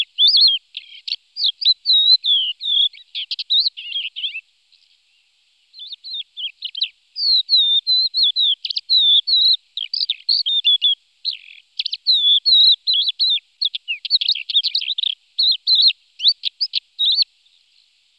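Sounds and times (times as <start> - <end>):
crested lark song: 0.0 - 4.4, 5.7 - 17.6.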